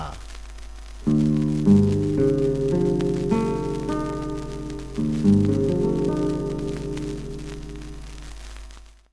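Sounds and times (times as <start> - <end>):
guitar tuning: 1.0 - 8.3.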